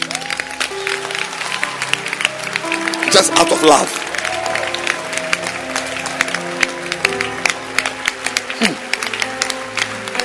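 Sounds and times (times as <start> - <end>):
crowd clapping: 0.0 - 10.2
speech: 3.2 - 4.0.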